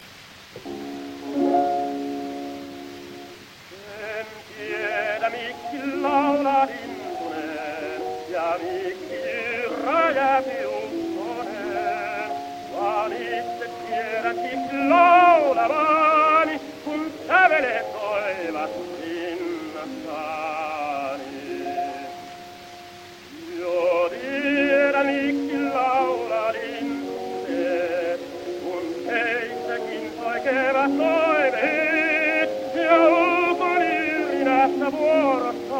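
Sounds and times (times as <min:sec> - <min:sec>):
gramophone playing: 0:00.6 - 0:35.7.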